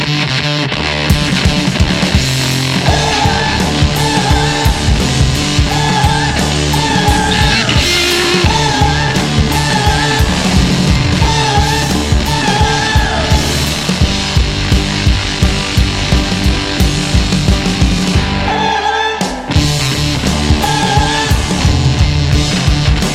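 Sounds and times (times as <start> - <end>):
rock riff: 0.0 - 23.1.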